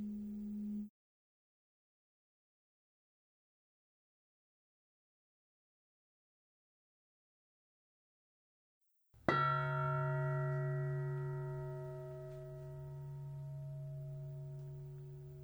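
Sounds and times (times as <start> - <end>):
repeated bell: 9.3 - 15.3.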